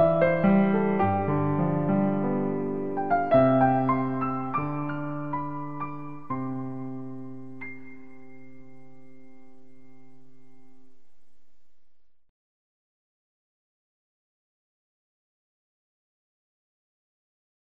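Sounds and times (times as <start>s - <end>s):
piano: 0.0s - 12.2s.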